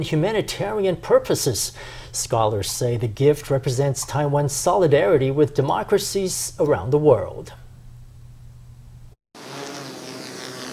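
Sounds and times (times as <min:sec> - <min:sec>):
speech: 0:00.0 - 0:07.6
drone buzzing in flight: 0:09.4 - 0:10.7.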